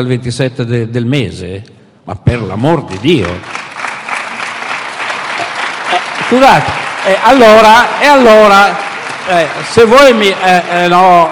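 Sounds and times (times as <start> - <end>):
speech: 0.0 - 3.6, 6.3 - 11.3
audience applauding: 2.9 - 11.3.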